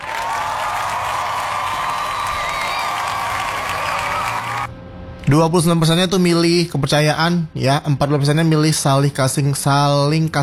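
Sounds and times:
audience applause: 0:00.0 - 0:04.7
speech: 0:05.3 - 0:10.4.

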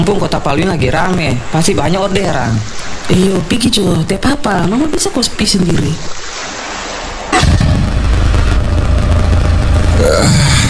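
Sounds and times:
speech: 0:00.0 - 0:06.5
motorcycle engine: 0:07.4 - 0:10.6.

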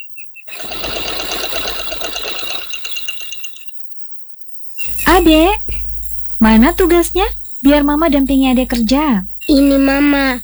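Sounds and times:
mother's sewing machine stitching: 0:00.5 - 0:03.7
speech: 0:05.2 - 0:05.7, 0:06.4 - 0:10.4.

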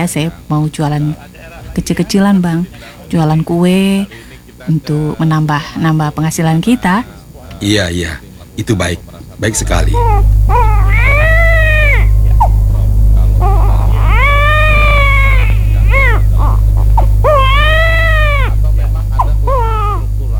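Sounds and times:
speech: 0:00.0 - 0:11.2
steady low hum: 0:00.0 - 0:20.3
small baby crying: 0:09.9 - 0:12.5, 0:13.4 - 0:18.5, 0:19.2 - 0:20.1.

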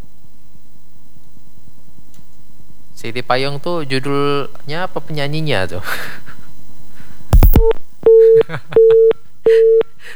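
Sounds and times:
speech: 0:03.0 - 0:06.2, 0:08.4 - 0:09.1
laughter: 0:04.9 - 0:07.2, 0:08.1 - 0:10.1
telephone busy tone after a caller's line was cut off: 0:07.4 - 0:10.1.

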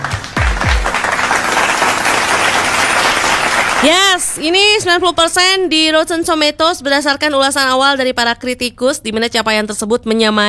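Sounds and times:
applause: 0:00.0 - 0:04.4
speech: 0:03.8 - 0:10.4.

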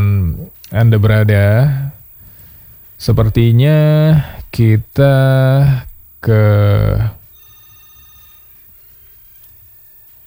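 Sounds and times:
speech: 0:00.7 - 0:01.8, 0:03.0 - 0:07.2
telephone ringing in a radio studio: 0:07.3 - 0:08.7.

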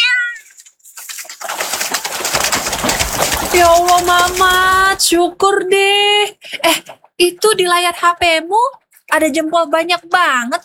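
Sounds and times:
cat meowing: 0:00.0 - 0:00.6
cat scratchy rustling in a plastic basin: 0:00.4 - 0:05.2
speech: 0:03.6 - 0:10.6.

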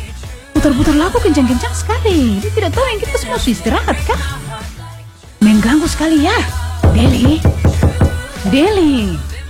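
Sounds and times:
speech: 0:00.6 - 0:04.4, 0:05.6 - 0:07.7, 0:08.4 - 0:09.3
firm knocks on a door: 0:06.8 - 0:09.1.

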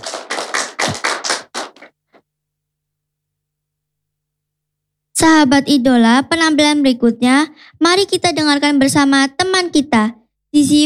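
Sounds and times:
group hand clapping at a school performance event: 0:00.0 - 0:02.0
speech: 0:05.4 - 0:10.8.

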